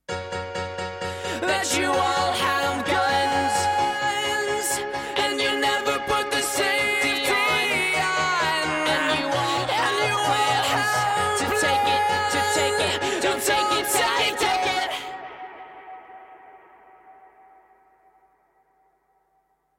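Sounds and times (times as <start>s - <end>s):
piano: 0.1s - 17.8s
backing vocals: 1.2s - 16.5s.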